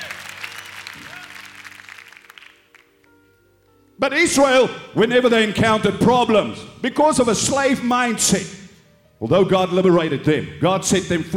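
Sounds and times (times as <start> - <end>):
crowd cheering and clapping: 0.0 - 2.9
speech: 4.0 - 8.6, 9.2 - 11.3.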